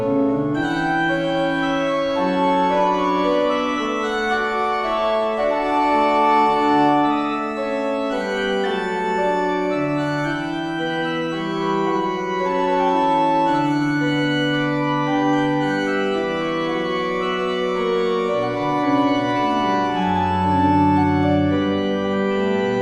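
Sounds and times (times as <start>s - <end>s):
organ minuet in D major: 0.0s - 22.8s.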